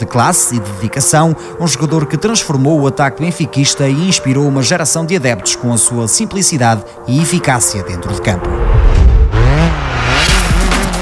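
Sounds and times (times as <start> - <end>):
speech: 0.0 - 10.4
rally car engines roaring at full power at Rally de Portugal: 8.4 - 11.0.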